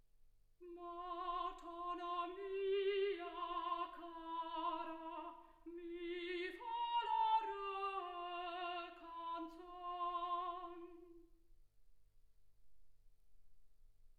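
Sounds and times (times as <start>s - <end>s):
soprano singing: 0.6s - 11.4s.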